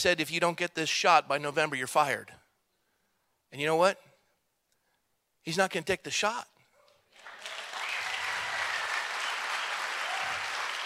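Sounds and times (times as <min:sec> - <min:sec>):
speech: 0:00.0 - 0:02.4, 0:03.5 - 0:04.1, 0:05.4 - 0:06.5
audience clapping: 0:07.1 - 0:10.8.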